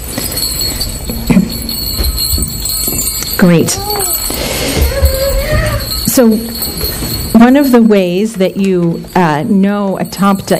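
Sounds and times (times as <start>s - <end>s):
small bells jingling: 0.0s - 10.5s
speech: 3.4s - 4.8s, 6.2s - 6.6s, 7.4s - 10.5s.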